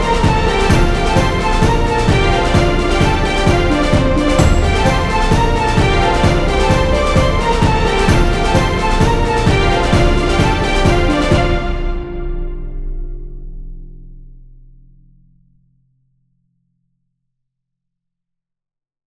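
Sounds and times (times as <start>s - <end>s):
Celtic festival music without choir: 0.0s - 13.1s.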